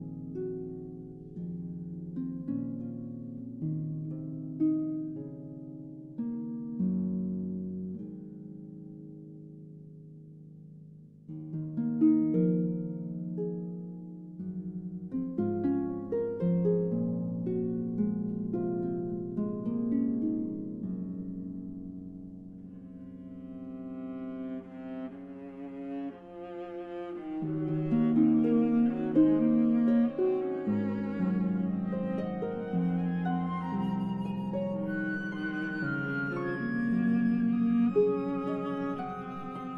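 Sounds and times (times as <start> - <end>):
harp concerto lullaby: 0.0 - 39.7.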